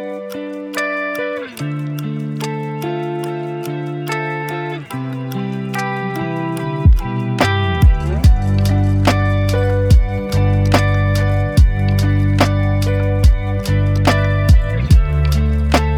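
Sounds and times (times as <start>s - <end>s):
lofi hip hop: 0.7s - 15.9s.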